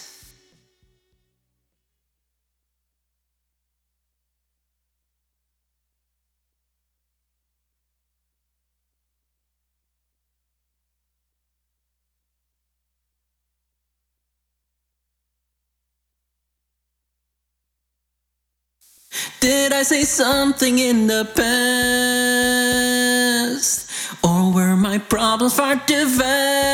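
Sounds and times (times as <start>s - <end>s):
person singing: 19.2s - 26.7s.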